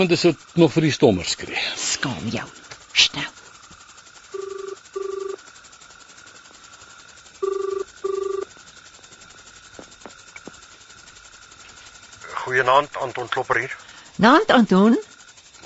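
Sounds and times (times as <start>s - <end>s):
speech: 0.0s - 3.4s, 12.6s - 15.1s
telephone ringing with double electronic buzzes: 4.4s - 5.4s, 7.4s - 8.5s.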